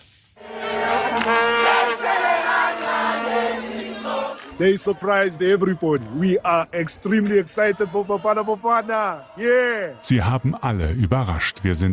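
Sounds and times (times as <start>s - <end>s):
football fans cheering: 0.4s - 11.6s
speech: 4.6s - 11.9s.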